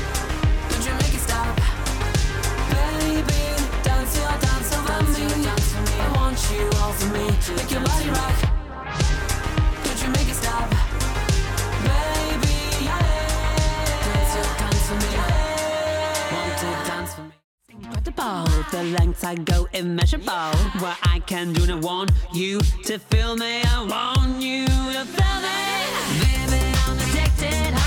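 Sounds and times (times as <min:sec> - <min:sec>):
person singing a reel: 0:00.0 - 0:08.5, 0:09.8 - 0:17.2, 0:17.8 - 0:27.8.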